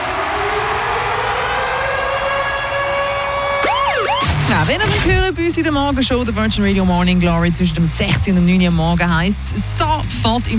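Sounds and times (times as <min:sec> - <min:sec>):
radio siren jingle: 0:00.0 - 0:05.3
speech: 0:04.5 - 0:10.5.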